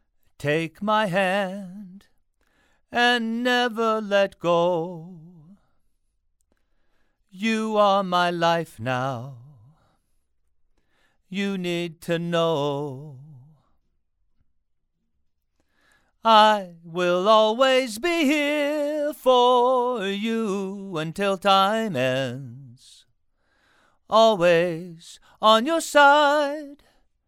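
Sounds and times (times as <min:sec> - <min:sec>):
male vocals: 0:00.4 - 0:02.2, 0:02.9 - 0:05.7, 0:07.3 - 0:09.9, 0:11.3 - 0:13.7, 0:16.2 - 0:23.1, 0:24.0 - 0:27.0.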